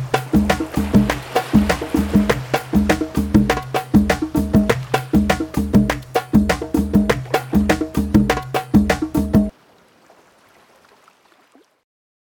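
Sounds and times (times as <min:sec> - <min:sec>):
Bandari music loops: 0:00.0 - 0:09.5.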